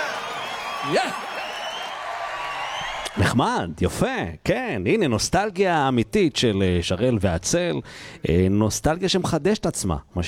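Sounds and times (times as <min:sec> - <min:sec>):
audience applause: 0:00.0 - 0:03.3
speech: 0:00.8 - 0:01.4, 0:03.2 - 0:10.2.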